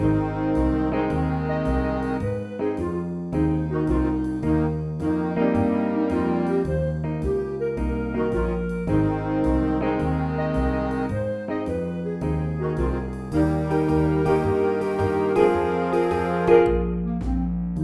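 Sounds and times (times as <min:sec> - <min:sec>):
jazz combo playing: 0:00.0 - 0:17.8.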